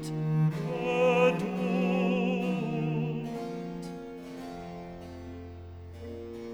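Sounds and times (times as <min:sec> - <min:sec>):
recitative singing: 0:00.0 - 0:05.0.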